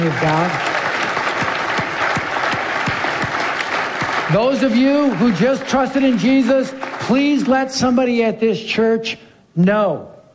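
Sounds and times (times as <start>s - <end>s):
speech: 0.0s - 0.7s, 4.3s - 10.1s
church congregation applause welcoming new believers: 0.0s - 8.2s.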